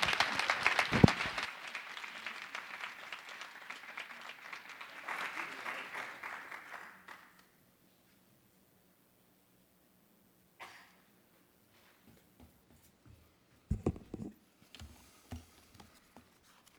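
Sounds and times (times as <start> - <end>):
audience applause welcoming guests: 0.0 - 7.4.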